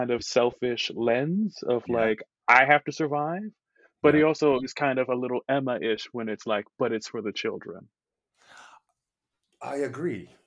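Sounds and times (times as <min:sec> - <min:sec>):
speech: 0:00.0 - 0:08.0, 0:09.6 - 0:10.4
deep breathy gasp: 0:08.4 - 0:08.8.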